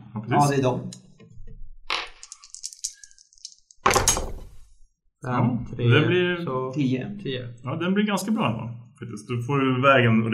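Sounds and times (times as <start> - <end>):
speech: 0.3 - 1.0, 5.2 - 10.3
three dice rolling and clattering: 1.9 - 4.6.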